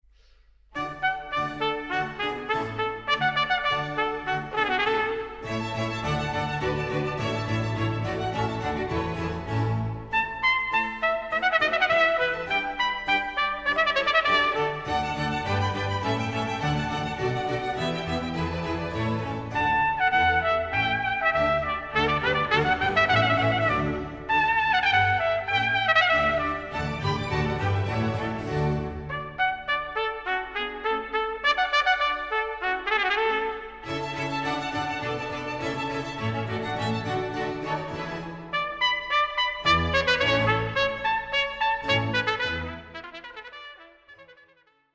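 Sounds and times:
concerto in D major, graceful allegro: 0:00.8 - 0:43.6.

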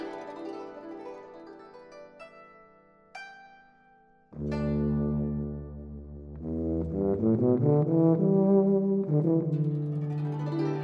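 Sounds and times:
tuba: 0:04.4 - 0:10.8.

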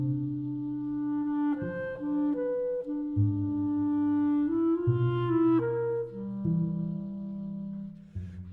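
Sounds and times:
clarinet playing slowly: 0:00.0 - 0:08.5.

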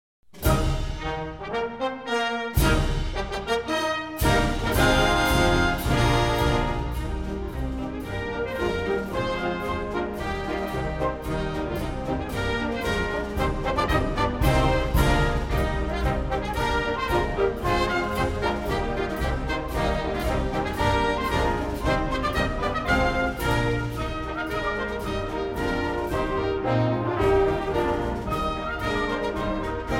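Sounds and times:
wind orchestra playing a march: 0:00.4 - 0:29.9.

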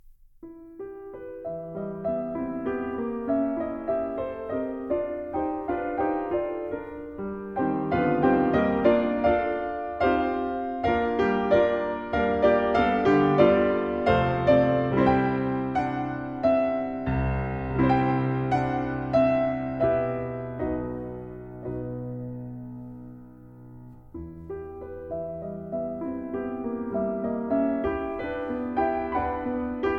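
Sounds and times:
piano barcarolle: 0:00.0 - 0:29.9.

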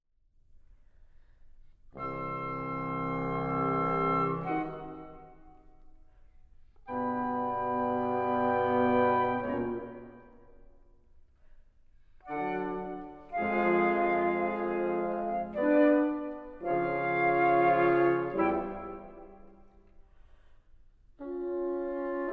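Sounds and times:
wind quintet playing: 0:01.9 - 0:06.2, 0:06.8 - 0:10.8, 0:12.2 - 0:19.8, 0:21.2 - 0:22.3.

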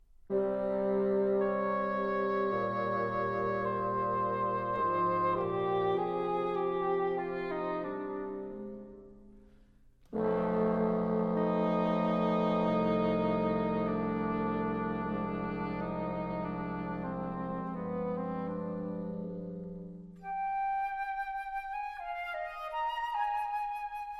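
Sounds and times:
woodwind quintet playing a praeludium: 0:00.0 - 0:24.1.

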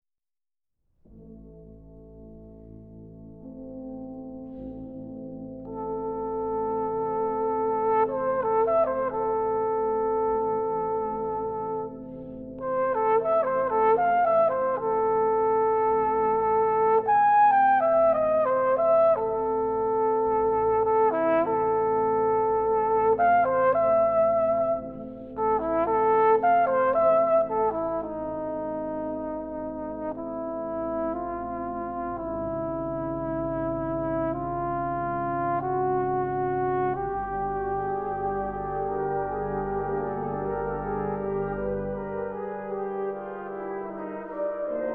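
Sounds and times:
dreamy trumpet concerto with brass band: 0:05.6 - 0:44.9.

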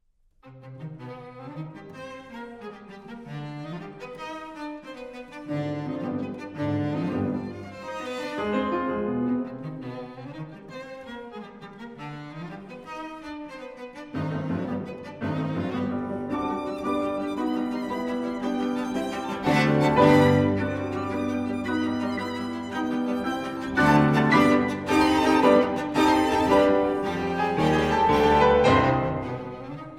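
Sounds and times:
piano trio in C minor, vivace: 0:05.7 - 0:10.1, 0:14.2 - 0:29.9.

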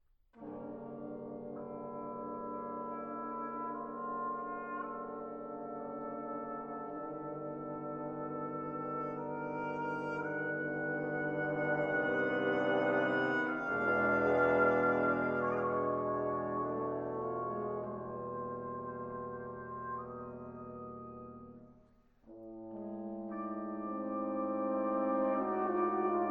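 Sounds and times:
brass quintet playing an arioso: 0:00.4 - 0:26.2.

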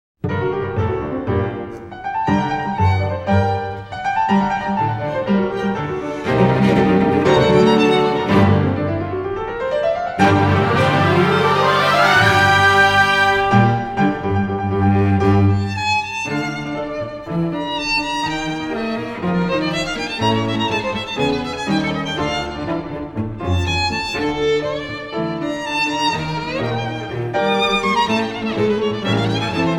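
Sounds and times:
cello in a triple concerto: 0:00.2 - 0:29.7
piano in a triple concerto: 0:00.2 - 0:29.7
violin in a triple concerto: 0:00.2 - 0:29.7
orchestra playing a triple concerto: 0:00.3 - 0:29.7.

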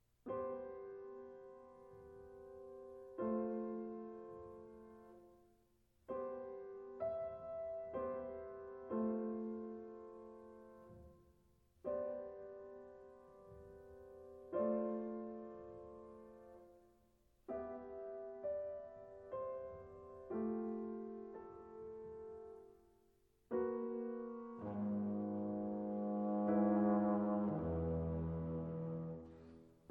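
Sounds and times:
piano playing an adagio: 0:00.0 - 0:29.9
trombone playing an adagio: 0:24.6 - 0:29.3.

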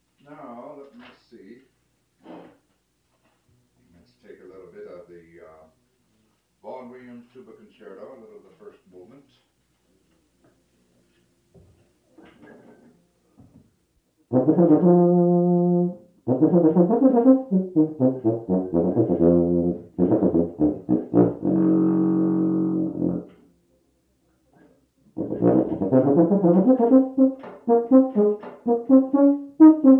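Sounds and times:
bass tuba concerto: 0:14.3 - 0:23.5, 0:25.1 - 0:29.9.

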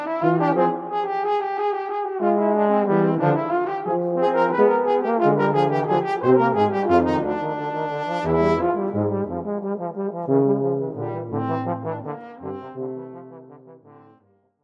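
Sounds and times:
English horn, viola and tuba trio playing a scherzino: 0:00.0 - 0:13.8.

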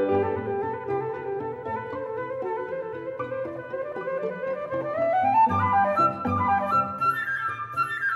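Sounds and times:
flute: 0:00.0 - 0:08.1
piano: 0:00.0 - 0:08.1
strings: 0:00.0 - 0:08.1.

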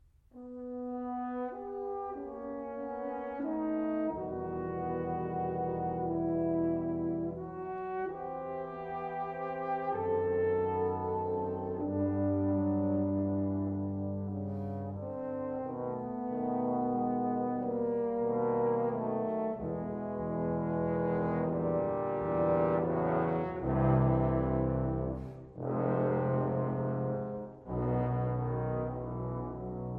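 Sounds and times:
brass ensemble playing a slow symphony movement: 0:00.4 - 0:29.9.

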